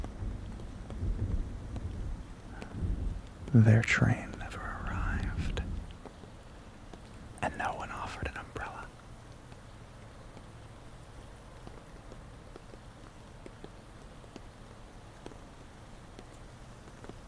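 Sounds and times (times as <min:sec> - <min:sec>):
rain falling at night: 0:00.0 - 0:17.2
speech: 0:03.5 - 0:04.3.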